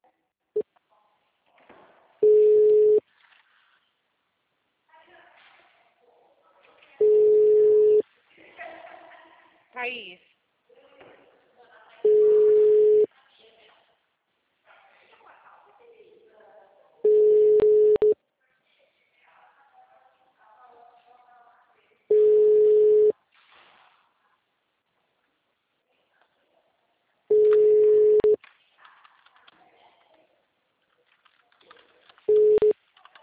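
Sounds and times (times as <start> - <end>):
telephone busy signal beeps on a Portuguese-language phone line: 2.2 - 3.0, 7.0 - 8.0, 12.1 - 13.1, 17.1 - 18.2, 22.1 - 23.1, 27.3 - 28.4, 32.3 - 32.7
speech: 9.8 - 10.3.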